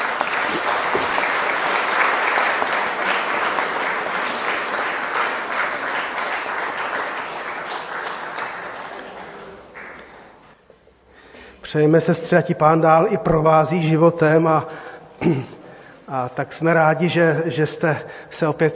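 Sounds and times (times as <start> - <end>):
applause: 0.0 - 10.4
speech: 11.7 - 15.5, 16.1 - 18.7.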